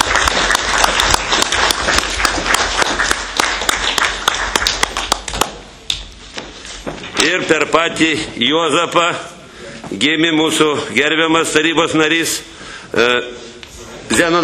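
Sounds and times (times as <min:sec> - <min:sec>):
audience applause at a council meeting: 0:00.0 - 0:05.7
speech: 0:07.3 - 0:09.3, 0:09.9 - 0:13.5, 0:14.1 - 0:14.4.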